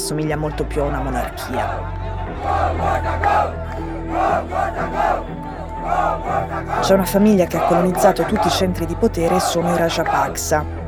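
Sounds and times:
speech: 0:00.1 - 0:10.8
protest crowd chanting: 0:00.3 - 0:10.8.

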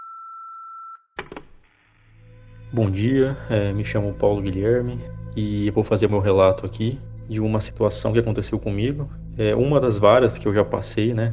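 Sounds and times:
voicemail message beep: 0:00.0 - 0:01.0
speech: 0:02.7 - 0:11.3.

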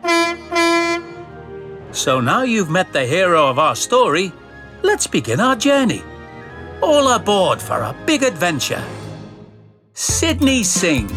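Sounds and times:
diesel shunting engine horn toots: 0:00.0 - 0:01.4
speech: 0:02.0 - 0:06.1, 0:06.8 - 0:09.0, 0:10.0 - 0:11.1.

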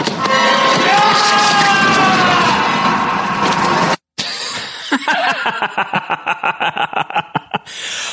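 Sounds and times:
scream with added reverb: 0:00.2 - 0:03.6
laughter: 0:04.2 - 0:07.7.

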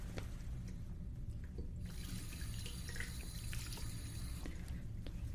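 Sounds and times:
hands being washed under running tap water: 0:00.1 - 0:05.3
tap water running: 0:01.4 - 0:04.6.

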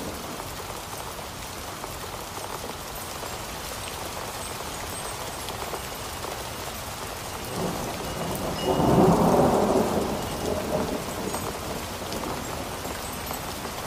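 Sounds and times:
steady rain in a storm: 0:00.0 - 0:13.8
low roll of thunder: 0:07.5 - 0:13.6.

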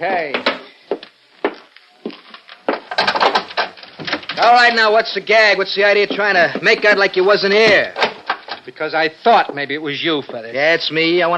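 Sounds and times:
speech: 0:00.0 - 0:00.6, 0:04.4 - 0:08.0, 0:08.7 - 0:11.3
wooden door being busted down: 0:02.4 - 0:04.9, 0:07.5 - 0:08.6.

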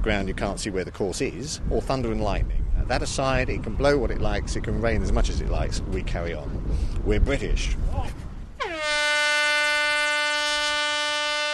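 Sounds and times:
speech: 0:00.0 - 0:08.2
loud horn signalling start of round: 0:08.6 - 0:11.5.

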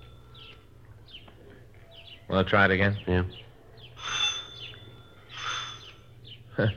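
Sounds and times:
speech: 0:02.3 - 0:03.5, 0:06.6 - 0:06.7
old-fashioned doorbell: 0:04.0 - 0:06.0.

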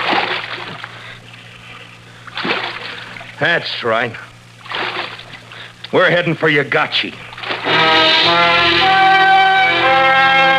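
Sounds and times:
canoe paddle strokes splashing in water: 0:00.0 - 0:03.4, 0:04.6 - 0:05.4, 0:07.2 - 0:08.4
water sloshing: 0:00.0 - 0:03.6, 0:04.6 - 0:05.8, 0:07.2 - 0:07.8
low steady hum: 0:00.0 - 0:10.5
speech: 0:03.4 - 0:04.3, 0:05.9 - 0:07.2, 0:08.0 - 0:09.2.

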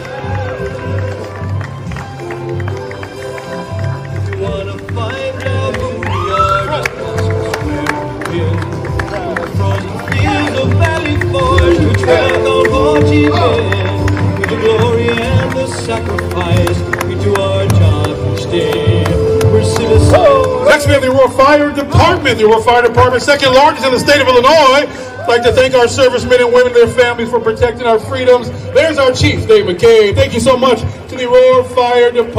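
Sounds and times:
crowd applause for the Aurora Fire Department Honor Guard: 0:00.0 - 0:21.0
speech: 0:21.4 - 0:32.3.

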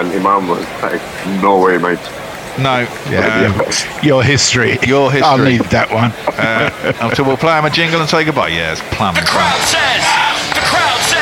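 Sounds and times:
speech: 0:00.0 - 0:10.8
stadium crowd shouting an appeal: 0:01.9 - 0:07.4, 0:09.1 - 0:11.2
laughter: 0:02.9 - 0:11.2.

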